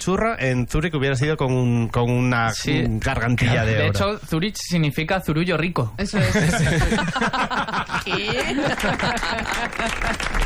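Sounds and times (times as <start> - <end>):
speech: 0.0 - 10.4
laughter: 6.2 - 10.4
person clapping: 8.0 - 10.4.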